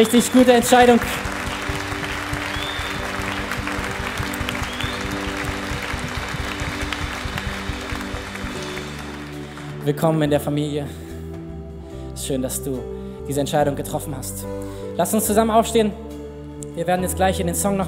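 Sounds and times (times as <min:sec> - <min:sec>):
speech: 0:00.0 - 0:01.4, 0:09.8 - 0:11.0, 0:12.2 - 0:16.0, 0:16.8 - 0:17.8
audience applause: 0:00.0 - 0:09.8.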